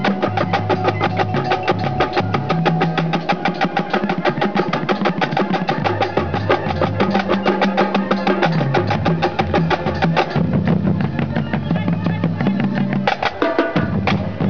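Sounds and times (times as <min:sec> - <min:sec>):
rumba drums: 0:00.0 - 0:14.4.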